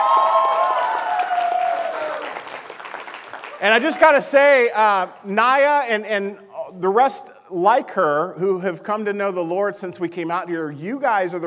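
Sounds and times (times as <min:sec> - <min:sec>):
audience round of applause: 0:00.0 - 0:04.4
speech: 0:03.6 - 0:11.4.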